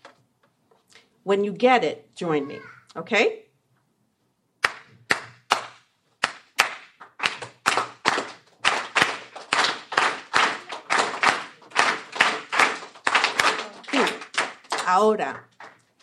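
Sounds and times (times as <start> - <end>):
speech: 1.2 - 3.4, 15.0 - 15.5
Cuban clave rhythm clapped by hand: 4.6 - 16.0.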